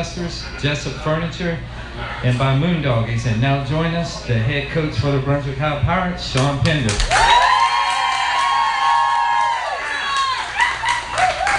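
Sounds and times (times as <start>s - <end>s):
speech: 0.0s - 7.3s
enthusiastic crowd cheering: 7.0s - 11.5s.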